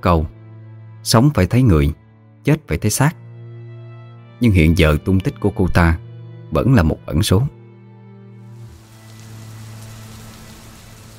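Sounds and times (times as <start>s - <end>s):
speech: 0.0s - 0.3s, 1.0s - 3.2s, 4.4s - 7.6s
steady rain falling: 8.5s - 11.1s.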